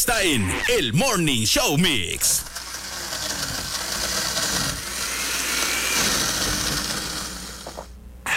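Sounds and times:
speech: 0.0s - 2.6s
blender grinding ice for frozen cappuccino: 2.4s - 7.9s.

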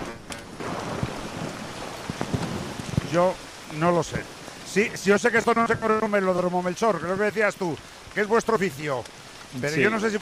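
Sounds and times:
hailstones striking hard surfaces: 0.0s - 10.1s
heavy rain: 0.0s - 10.1s
speech: 3.1s - 10.1s.

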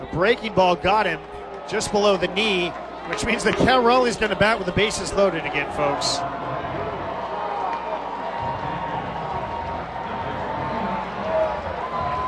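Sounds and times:
large baseball crowd booing and cheering: 0.0s - 12.2s
speech: 0.1s - 6.4s.

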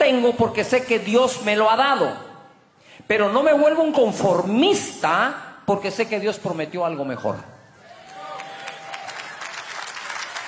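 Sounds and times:
speech: 0.1s - 2.3s, 3.1s - 7.5s
audience applause: 8.0s - 10.4s.

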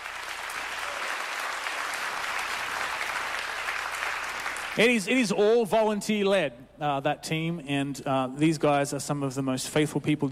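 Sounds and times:
audience applause: 0.0s - 4.9s
speech: 4.8s - 10.2s.

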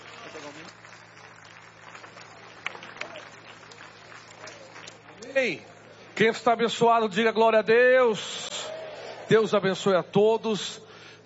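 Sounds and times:
audience applause: 0.0s - 5.2s
speech: 5.4s - 8.4s, 9.3s - 10.9s.

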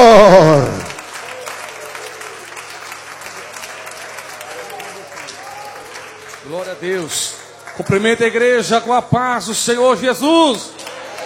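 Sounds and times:
faint voices and cheers: 0.0s - 8.2s, 10.5s - 11.2s
audience applauding: 0.0s - 8.5s, 10.7s - 11.2s
speech: 6.6s - 11.0s.

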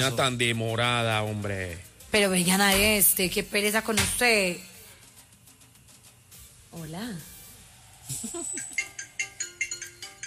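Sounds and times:
speech: 0.0s - 4.7s, 6.8s - 7.3s, 8.1s - 8.8s
phone ringtone announcing an incoming call: 8.3s - 10.2s.

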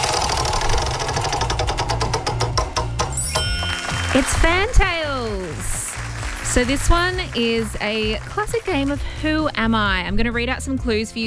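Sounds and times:
game show prize wheel spinning with pointer clicking: 0.0s - 9.0s
speech: 4.2s - 5.8s, 6.5s - 11.2s.

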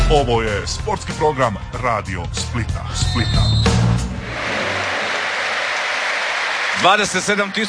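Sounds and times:
speech: 0.1s - 3.8s, 6.8s - 7.6s
football stadium crowd applauding a substituted goal scorer: 4.3s - 7.6s.

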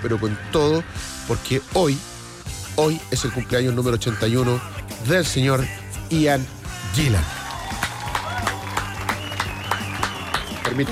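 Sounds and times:
speech: 0.0s - 2.1s, 2.8s - 7.4s, 10.8s - 10.9s
hands clapping: 7.2s - 10.9s.

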